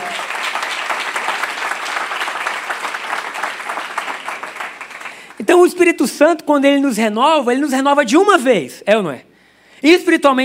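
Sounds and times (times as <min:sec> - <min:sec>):
audience applause: 0:00.0 - 0:05.4
speech: 0:05.5 - 0:10.4.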